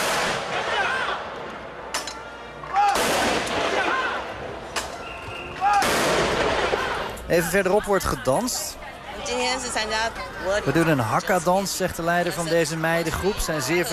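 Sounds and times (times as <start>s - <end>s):
cannon fire: 0.0s - 1.3s, 2.9s - 4.1s, 5.8s - 6.9s
speech: 7.3s - 13.9s.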